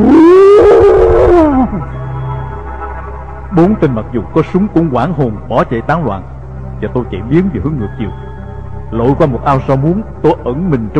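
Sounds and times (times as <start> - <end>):
eerie ghostly howl: 0.0 - 2.0
speech: 3.6 - 8.3, 8.9 - 10.9.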